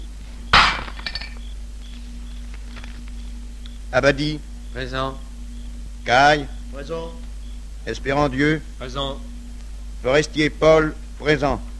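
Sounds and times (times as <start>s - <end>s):
glass bottle smashing: 0.6s - 1.4s
glass fragments tinkling: 0.6s - 1.4s
speech: 3.9s - 5.3s, 6.0s - 7.2s, 7.8s - 9.3s, 10.0s - 11.7s.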